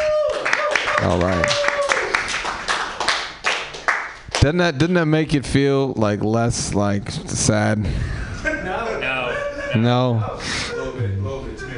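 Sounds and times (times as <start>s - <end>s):
people clapping: 0.0s - 4.6s
speech: 1.0s - 1.7s, 4.4s - 8.8s, 9.7s - 11.1s
laughter: 8.3s - 11.7s.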